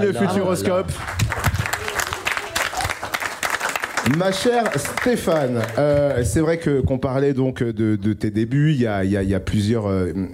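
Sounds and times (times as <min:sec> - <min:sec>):
speech: 0:00.0 - 0:01.3, 0:04.1 - 0:10.3
audience applause: 0:00.4 - 0:06.3.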